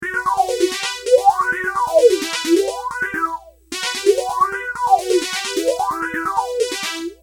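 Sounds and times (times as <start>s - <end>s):
phaser effect: 0.0s - 6.7s.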